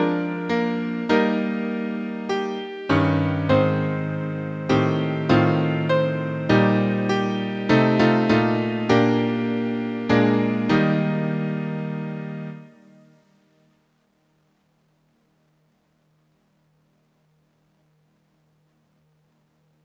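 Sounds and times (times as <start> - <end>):
piano accompaniment: 0.0 - 13.0.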